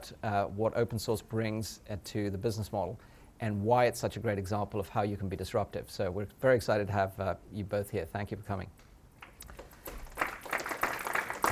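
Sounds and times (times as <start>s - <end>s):
speech: 0.0s - 8.9s
audience applause: 9.5s - 11.5s.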